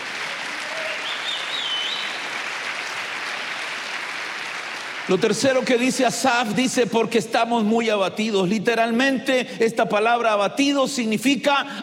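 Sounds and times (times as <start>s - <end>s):
people clapping: 0.0s - 6.2s
speech: 5.1s - 11.8s.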